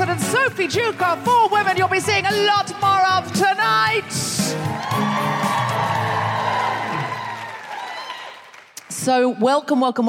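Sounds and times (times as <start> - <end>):
live comedy show audience clapping at St David's Hall, Cardiff: 0.0 - 2.6, 4.4 - 9.1
speech: 0.1 - 5.9, 9.0 - 10.0
comedy show audience whoops and shouts: 4.6 - 8.4.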